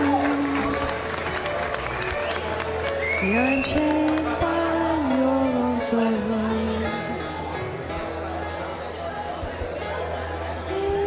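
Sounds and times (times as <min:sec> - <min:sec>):
audience clapping for a performer at a live show: 0:00.0 - 0:04.6
crowd noise at a live show: 0:00.0 - 0:11.0
speech: 0:03.2 - 0:04.5, 0:05.9 - 0:06.5.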